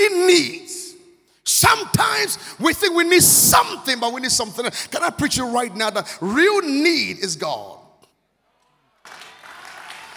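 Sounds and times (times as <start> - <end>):
speech: 0.1 - 0.6, 1.5 - 7.8
audience applause: 9.0 - 10.1.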